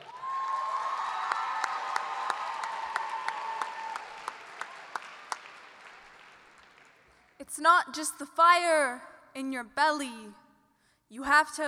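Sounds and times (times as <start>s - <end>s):
audience applause welcoming a speaker to the stage: 0.0s - 7.4s
speech: 7.5s - 10.4s, 11.1s - 11.6s.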